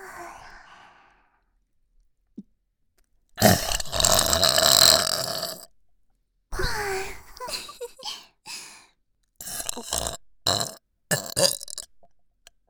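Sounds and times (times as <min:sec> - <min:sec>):
burping compilation: 0:03.4 - 0:05.7, 0:09.4 - 0:11.8.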